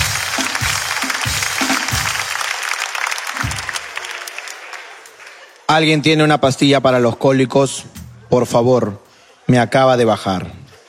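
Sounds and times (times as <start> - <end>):
audience applause: 0.0 - 5.7
speech: 5.7 - 10.6.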